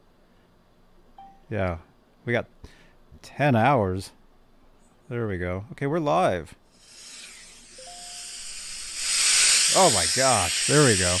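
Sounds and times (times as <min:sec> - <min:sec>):
speech: 0:01.5 - 0:04.2, 0:05.1 - 0:06.6, 0:09.8 - 0:11.1
television static sound effect: 0:07.0 - 0:11.1.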